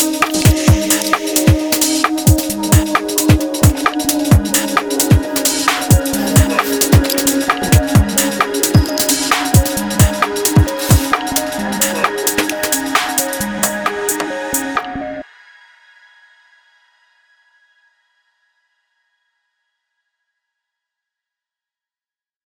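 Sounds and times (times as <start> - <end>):
music mashup: 0.0 - 15.2.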